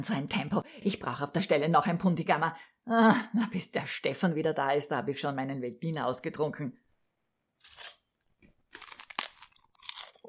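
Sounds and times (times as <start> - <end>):
speech: 0.0 - 6.8
crunching rice cakes: 8.6 - 10.2.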